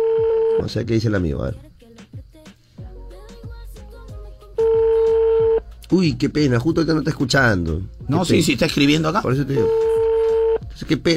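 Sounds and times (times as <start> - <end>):
telephone call ringing tone: 0.0 - 0.6, 4.6 - 5.6, 9.5 - 10.6
speech: 0.6 - 1.7, 5.9 - 10.0, 10.8 - 11.1.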